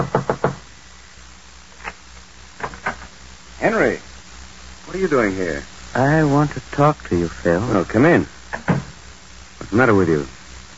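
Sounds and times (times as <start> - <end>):
knocking on an apartment wooden door: 0.0 - 0.6, 8.6 - 9.0
speech: 3.6 - 4.1, 5.0 - 8.6, 9.7 - 10.7.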